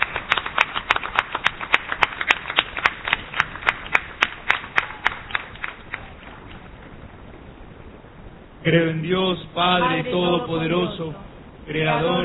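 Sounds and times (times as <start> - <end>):
audience applause: 0.0 - 6.5
speech: 8.7 - 12.2.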